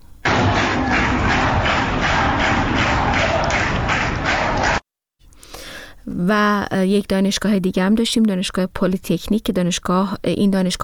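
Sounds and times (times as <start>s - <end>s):
students clapping hands in protest: 0.3s - 4.8s
speech: 6.2s - 10.8s.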